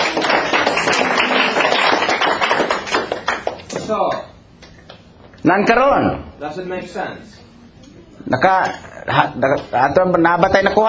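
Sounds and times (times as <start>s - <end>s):
church congregation clapping in praise to the Lord: 0.0s - 4.2s
speech: 5.4s - 7.4s, 8.2s - 10.8s.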